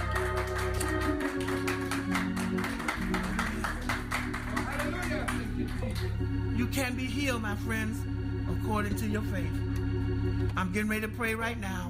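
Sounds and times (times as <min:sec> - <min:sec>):
audience hand clapping: 0:00.0 - 0:06.2
speech: 0:06.9 - 0:11.8.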